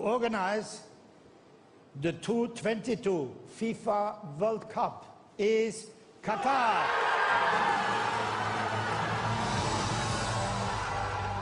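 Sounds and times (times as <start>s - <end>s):
speech: 0.0s - 0.9s, 2.0s - 8.1s
crowd cheering: 6.4s - 11.4s.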